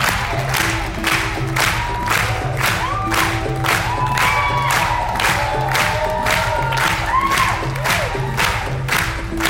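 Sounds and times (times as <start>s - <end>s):
festival audience clapping in rhythm for a voguing dancer: 0.0s - 9.4s
crowd whoops and shouts: 1.6s - 8.9s.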